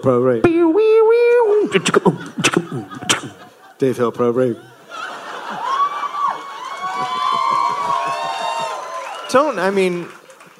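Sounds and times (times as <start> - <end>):
speech: 0.0 - 0.9, 1.7 - 3.2, 3.8 - 4.7, 9.3 - 10.2
laughter: 1.5 - 8.7
live audience applause and cheering: 5.3 - 10.5
shouts: 5.6 - 9.7.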